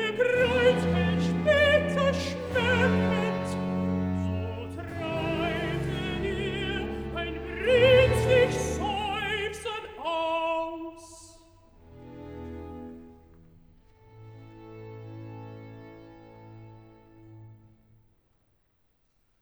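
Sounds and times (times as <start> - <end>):
alto singing cantata recitative: 0.0 - 11.3.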